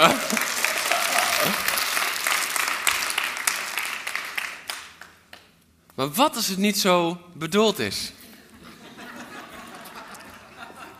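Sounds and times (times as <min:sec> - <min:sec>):
speech: 0:00.0 - 0:00.4, 0:06.0 - 0:08.2
laughter: 0:00.0 - 0:02.0, 0:08.5 - 0:10.9
audience applause: 0:00.0 - 0:05.1.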